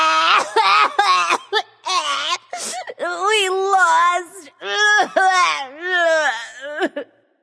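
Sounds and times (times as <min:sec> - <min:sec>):
person crying boo hoo: 0:00.1 - 0:03.2, 0:04.8 - 0:07.1.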